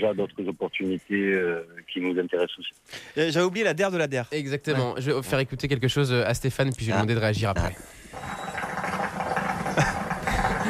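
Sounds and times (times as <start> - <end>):
speech: 0.0 - 8.4
moped engine running: 8.2 - 10.6.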